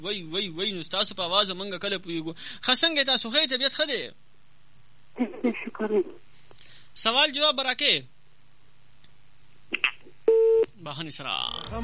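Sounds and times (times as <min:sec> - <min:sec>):
speech: 0:00.0 - 0:04.3, 0:05.2 - 0:06.2, 0:07.0 - 0:08.1, 0:10.8 - 0:11.8
electronic telephone beeps after a dropped call: 0:10.3 - 0:10.7.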